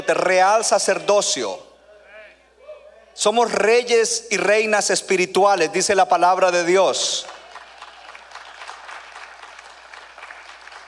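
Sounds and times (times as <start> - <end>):
speech: 0.0 - 1.7, 3.2 - 7.4
audience applause: 7.3 - 10.8.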